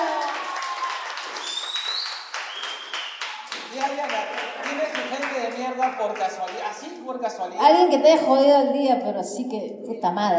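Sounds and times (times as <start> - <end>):
live audience applause: 0.0 - 6.8
speech: 4.0 - 10.3.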